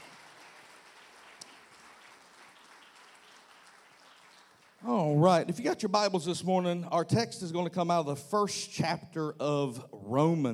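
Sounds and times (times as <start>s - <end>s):
audience applauding: 0.0s - 5.4s
speech: 5.1s - 10.5s.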